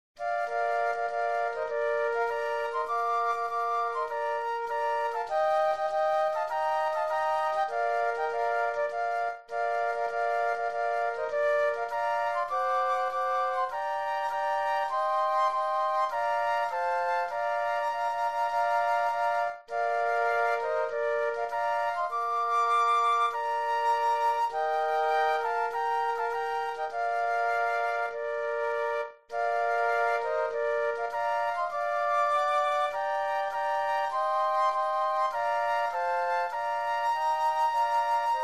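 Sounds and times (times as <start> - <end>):
flute trio playing: 0.2 - 38.4.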